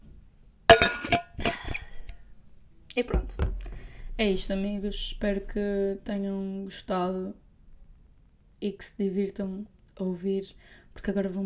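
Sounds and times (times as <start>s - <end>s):
glass clinking: 0.7s - 1.8s
speech: 3.0s - 3.5s, 4.2s - 7.4s, 8.6s - 11.4s.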